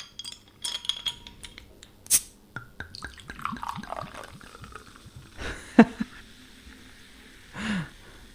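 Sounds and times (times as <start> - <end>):
soda bottle opened with bottle opener: 0.9 - 4.2
soda fizzing: 2.8 - 8.3.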